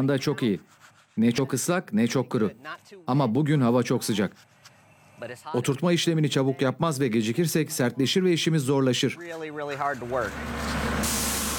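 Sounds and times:
speech: 0.0 - 4.6, 5.2 - 11.2
truck arriving: 9.5 - 11.5.

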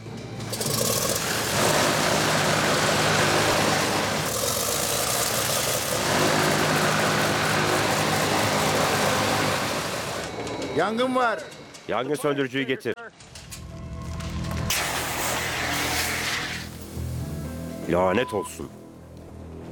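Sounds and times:
aircraft engine starting: 0.0 - 10.6, 14.5 - 17.3
speech: 10.8 - 13.0, 17.9 - 18.8.

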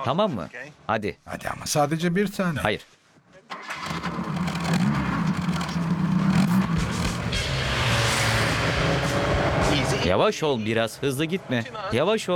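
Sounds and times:
speech: 0.0 - 4.2, 10.0 - 12.3
powerful car engine starting and revving: 3.7 - 10.1.

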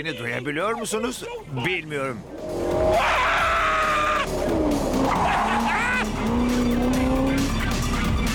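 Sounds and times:
speech: 0.0 - 3.4
Cobra sports car engine roaring: 2.2 - 8.3
Cobra sports car tires squealing: 2.2 - 8.3.

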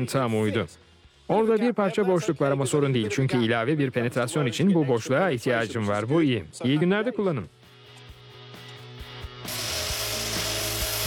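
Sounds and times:
speech: 0.0 - 7.6
power sander sanding metal panel edges: 9.5 - 11.0.

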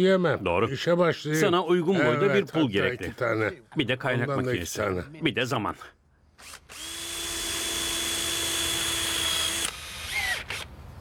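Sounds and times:
speech: 0.0 - 7.0
electric drill running then dying: 6.4 - 10.7.

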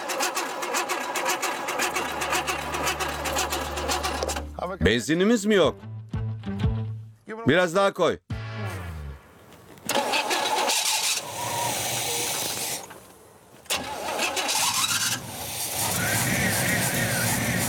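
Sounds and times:
engine cranking and starting after refuelling: 0.0 - 4.7, 9.9 - 17.6
speech: 4.7 - 5.9, 7.4 - 8.7.

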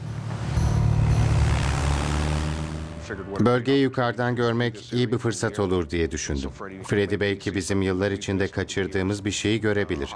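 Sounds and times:
propeller aircraft engine droning before takeoff: 0.0 - 3.4
speech: 3.1 - 10.1.

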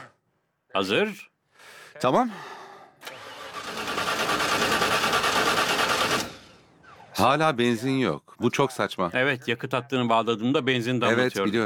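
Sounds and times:
speech: 0.8 - 2.6, 7.2 - 11.6
car engine running: 3.3 - 7.0.

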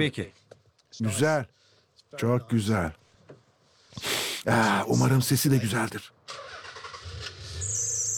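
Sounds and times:
speech: 0.0 - 3.0, 4.0 - 6.4
V6 car engine cranking, starting and idling: 6.2 - 8.1
high-pitched belt squeal: 6.6 - 8.1.

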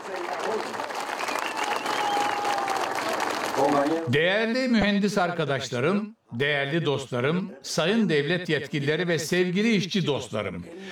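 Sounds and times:
audience applause at a large construction-site ceremony: 0.0 - 4.1
crowd noise: 0.0 - 4.2
speech: 3.6 - 10.9.

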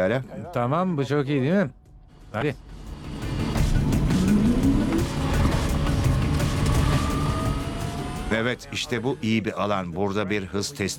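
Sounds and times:
speech: 0.0 - 2.8, 8.3 - 10.9
road rumble: 2.6 - 9.0
car engine accelerating: 2.7 - 9.2.

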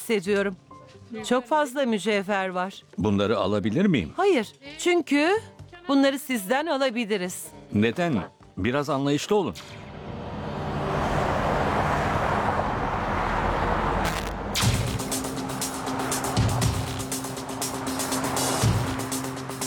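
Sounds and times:
speech: 0.1 - 9.8
car traffic on a bridge: 9.6 - 19.6.

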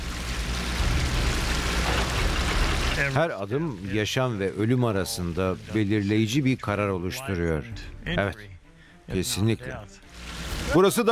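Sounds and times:
water hissing on a fire: 0.0 - 6.6, 10.0 - 11.0
speech: 3.0 - 8.5, 9.1 - 11.0.

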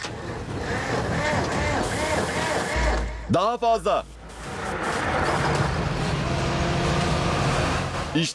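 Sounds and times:
old logging truck engine starting up and revving: 0.0 - 8.3
speech: 3.3 - 4.2, 8.2 - 8.3.

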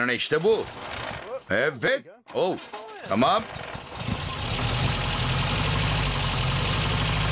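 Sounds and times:
speech: 0.0 - 3.6
car engine started with ignition key running on three of four cylinders: 3.4 - 7.3.

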